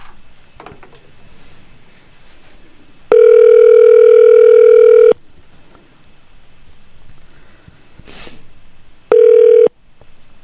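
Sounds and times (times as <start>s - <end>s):
telephone ringing: 3.1s - 5.2s, 9.1s - 9.7s
faint sniff: 7.4s - 8.5s.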